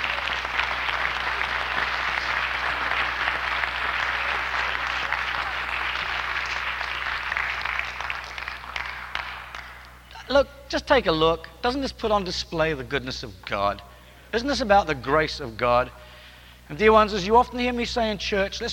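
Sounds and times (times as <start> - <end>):
church congregation applauding in welcome: 0.0 - 10.2
speech: 10.3 - 16.0, 16.7 - 18.7.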